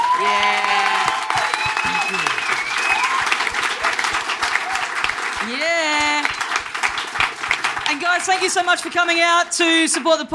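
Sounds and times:
whoops and cheers: 0:00.0 - 0:06.4
audience applause: 0:00.0 - 0:10.2
speech: 0:00.2 - 0:00.7, 0:08.2 - 0:10.3.

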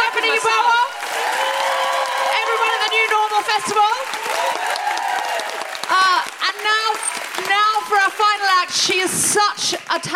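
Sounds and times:
audience applause: 0:00.0 - 0:08.8
speech: 0:07.9 - 0:10.1.

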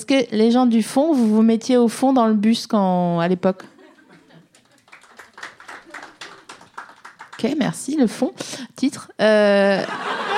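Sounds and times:
speech: 0:00.0 - 0:03.7, 0:07.4 - 0:10.3
laughter: 0:03.6 - 0:06.7, 0:09.8 - 0:10.3
crowd applause: 0:04.4 - 0:07.6.

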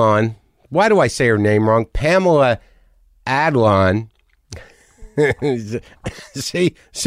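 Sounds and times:
speech: 0:00.0 - 0:07.0
phlegmy laugh turning into a cough: 0:04.6 - 0:06.5.

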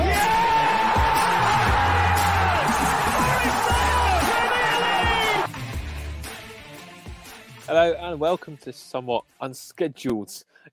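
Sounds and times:
football crowd at the City Ground cheering after a Nottingham Forest goal: 0:00.0 - 0:05.5
people shouting: 0:00.0 - 0:05.5
speech: 0:07.8 - 0:10.7.

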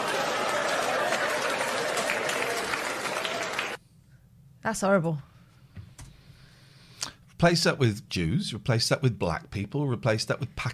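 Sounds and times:
crowd applauding: 0:00.0 - 0:03.8
speech: 0:04.6 - 0:05.3, 0:07.4 - 0:10.7.

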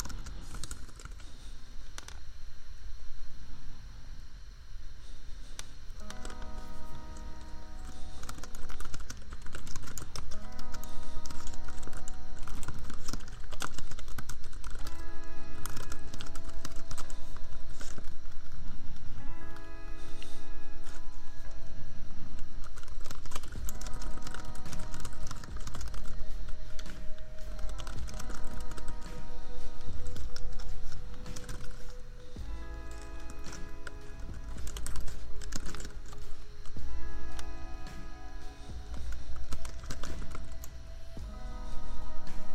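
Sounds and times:
keyboard typing: 0:00.0 - 0:02.2, 0:05.5 - 0:42.5
royalty-free lofi beat: 0:00.0 - 0:02.5, 0:05.0 - 0:42.5
laptop fan hum: 0:00.0 - 0:42.5.

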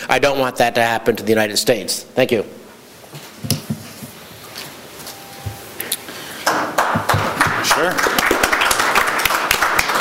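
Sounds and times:
speech: 0:00.1 - 0:02.6
crowd applause: 0:06.4 - 0:09.9.

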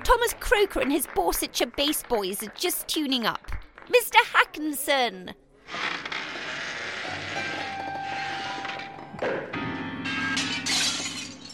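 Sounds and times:
speech: 0:00.1 - 0:06.0
humming, jangled grand piano strings: 0:07.1 - 0:11.5
grand piano crashing through plate glass window: 0:10.3 - 0:11.5.

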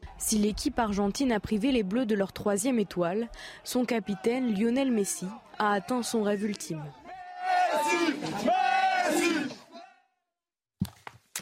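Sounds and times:
Argentine football supporters cheering: 0:00.0 - 0:10.1
speech: 0:00.2 - 0:07.0.

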